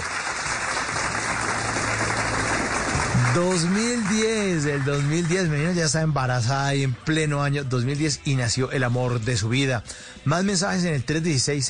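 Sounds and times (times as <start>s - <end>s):
crowd applause: 0.0s - 5.9s
speech: 3.4s - 11.6s.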